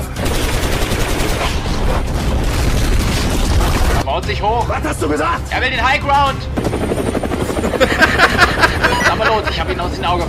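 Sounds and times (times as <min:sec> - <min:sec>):
gunfire: 0:00.0 - 0:04.0
speech: 0:04.3 - 0:07.1, 0:07.8 - 0:10.2
laughter: 0:07.7 - 0:09.9.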